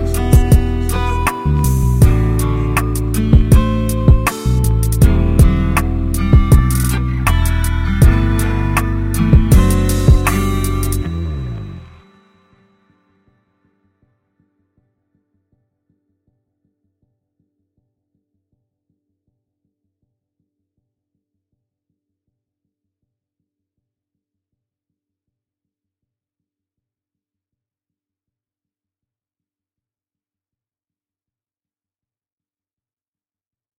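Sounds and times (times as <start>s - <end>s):
storytelling instrumental music: 0.0s - 12.6s.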